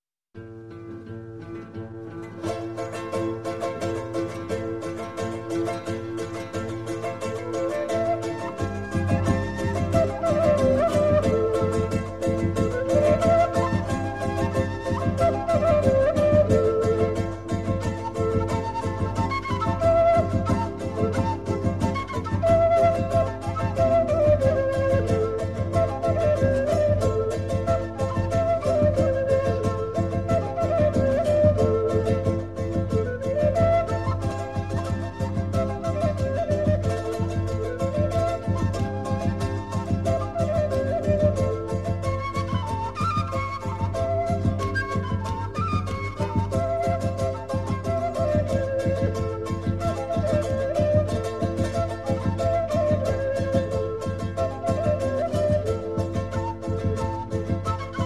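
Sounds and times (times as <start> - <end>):
Andean harp: 0.4 - 58.0
guitar: 0.4 - 58.0
flute: 2.3 - 58.0.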